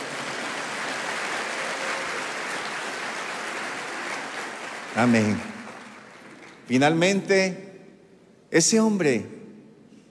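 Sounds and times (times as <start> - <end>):
audience applause: 0.0 - 6.7
speech: 5.0 - 5.5, 6.7 - 7.7, 8.5 - 9.4.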